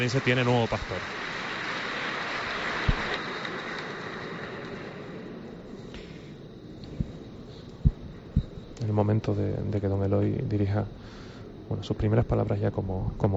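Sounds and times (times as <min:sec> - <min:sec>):
speech: 0:00.0 - 0:01.3, 0:08.9 - 0:13.3
overflowing applause of cathedral audience: 0:00.0 - 0:05.4.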